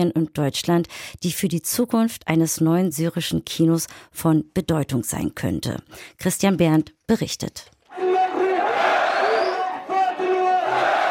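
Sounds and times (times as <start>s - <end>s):
speech: 0.0s - 7.8s
crowd cheering: 7.9s - 11.1s.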